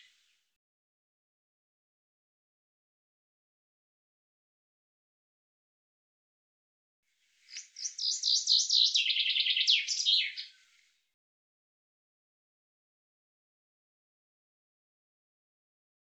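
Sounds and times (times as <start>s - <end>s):
bird trilling song: 7.4s - 10.9s.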